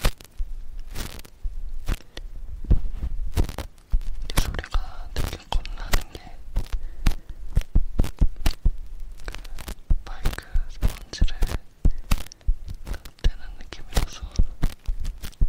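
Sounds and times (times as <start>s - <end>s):
sticky ear pick and cotton swab crackles and taps: 0.0s - 15.4s
scraping rubs: 0.8s - 6.8s, 7.6s - 15.4s
soft whispering: 4.2s - 7.0s, 9.2s - 14.8s.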